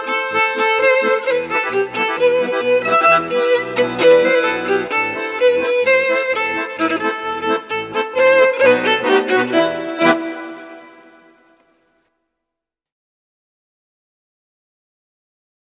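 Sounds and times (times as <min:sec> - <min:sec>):
instrumental music: 0:00.0 - 0:12.1.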